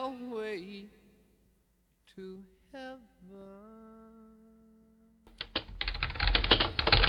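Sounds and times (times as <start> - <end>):
speech: 2.2 - 3.8
computer keyboard typing: 5.3 - 7.0.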